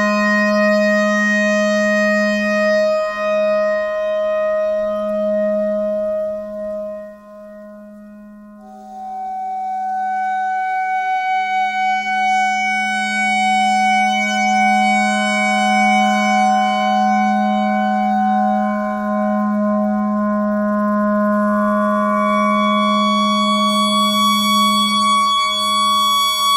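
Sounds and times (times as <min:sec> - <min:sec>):
clarinet notes: 0:00.0 - 0:26.5
noise: 0:00.0 - 0:26.5.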